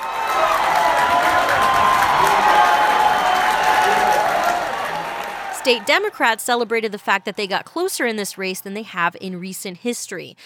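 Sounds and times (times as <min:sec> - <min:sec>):
scattered clapping: 0:00.0 - 0:06.1
large crowd cheering at a watch party: 0:00.0 - 0:07.4
speech: 0:05.7 - 0:10.4.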